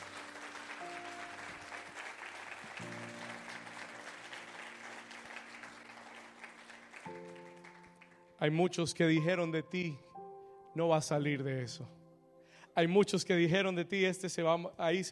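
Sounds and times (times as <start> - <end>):
audience applause: 0.0 - 8.3
speech: 8.4 - 10.1, 10.8 - 12.0, 12.8 - 15.1.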